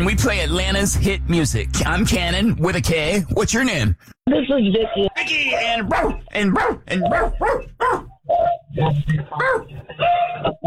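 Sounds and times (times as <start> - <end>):
speech: 0.0 - 10.6
dog grunting and whining: 5.6 - 10.6.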